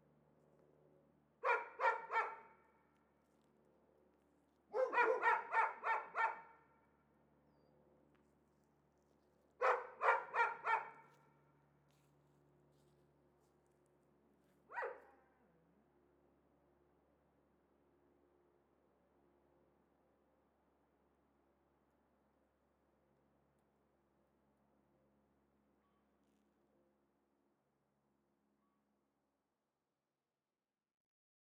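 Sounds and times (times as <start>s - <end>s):
dogs shut in cages barking excitedly: 1.4s - 2.6s, 4.7s - 6.6s, 9.6s - 11.1s, 14.7s - 15.1s.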